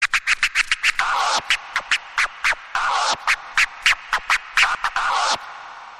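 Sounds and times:
record scratching: 0.0 - 5.6.

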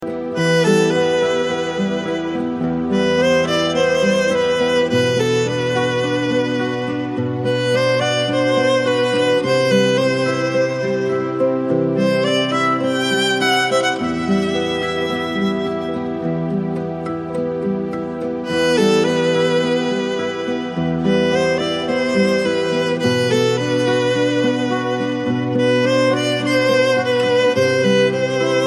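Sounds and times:
Azeri music: 0.0 - 28.6.

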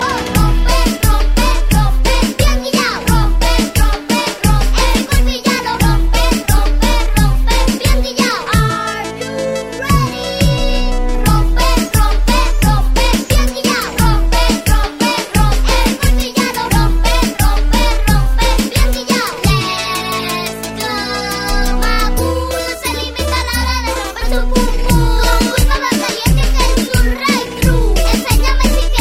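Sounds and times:
children's song: 0.0 - 29.0.

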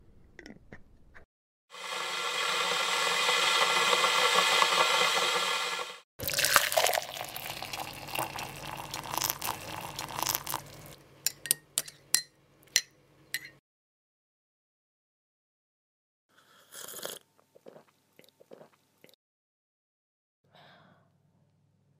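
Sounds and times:
tea making ASMR: 1.8 - 11.6.

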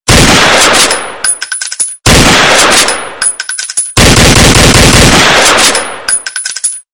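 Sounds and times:
big 9mm gun shot: 0.1 - 1.2, 2.1 - 3.2, 4.0 - 6.1.

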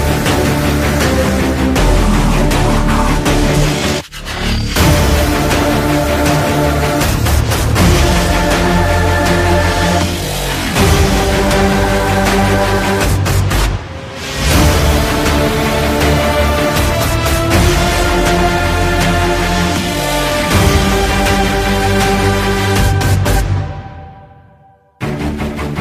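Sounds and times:
game music: 0.0 - 25.7.

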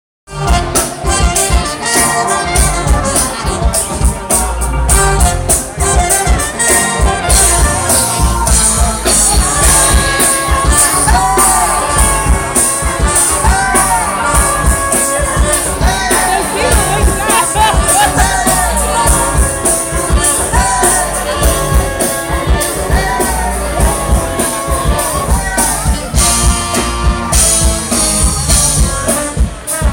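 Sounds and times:
jazz music: 0.3 - 29.9
laughter: 7.3 - 26.2.

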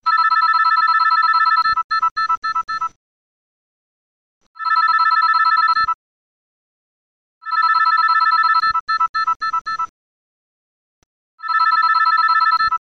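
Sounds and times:
cell phone sound: 0.0 - 3.0, 4.6 - 6.0, 7.4 - 9.9, 11.4 - 12.8.

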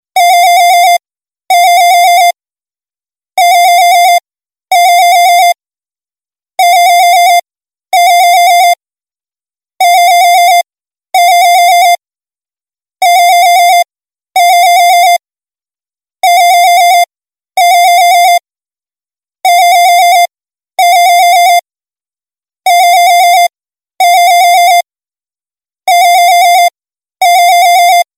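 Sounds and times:
home phone: 0.2 - 2.4, 3.4 - 5.6, 6.6 - 8.8, 9.8 - 12.0, 13.0 - 15.2, 16.2 - 18.5, 19.4 - 21.7, 22.6 - 24.9, 25.9 - 28.1.

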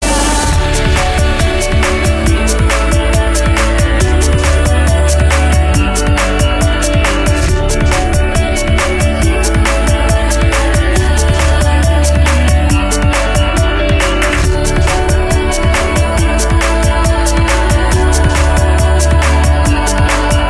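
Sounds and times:
chillout trance music: 0.0 - 20.4.

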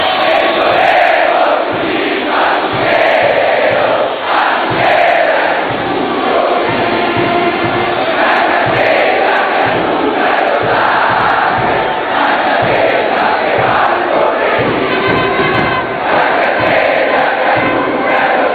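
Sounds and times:
anthem: 0.0 - 18.5.

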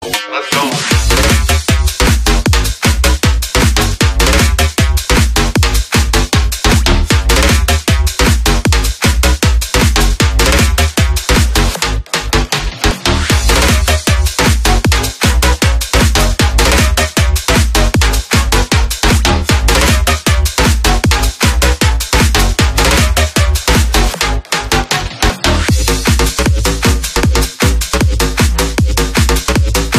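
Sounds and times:
hardbass music: 0.0 - 29.9.

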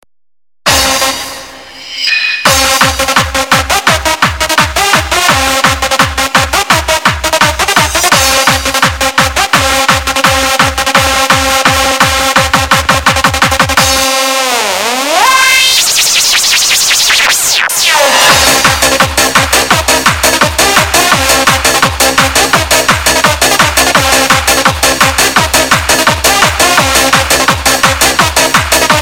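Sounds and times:
techno shuffle beat: 2.4 - 29.0.

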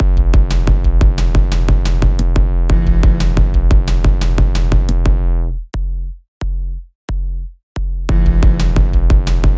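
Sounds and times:
techno beat: 0.0 - 9.5.

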